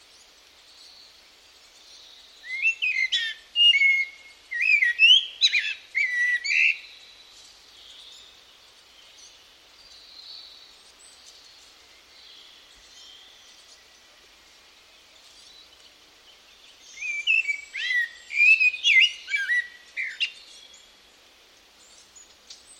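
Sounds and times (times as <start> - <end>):
bird calls: 2.0 - 14.0, 15.2 - 21.0.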